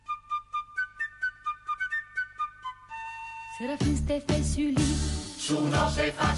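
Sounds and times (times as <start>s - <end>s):
person whistling a bouncy tune: 0.0s - 3.9s
speech: 3.6s - 6.3s.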